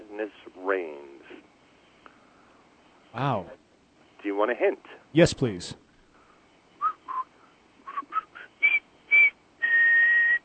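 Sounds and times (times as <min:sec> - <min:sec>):
speech: 0:00.2 - 0:01.1, 0:03.2 - 0:03.6, 0:04.3 - 0:05.8
British soldiers whistling a march tune: 0:06.8 - 0:10.4.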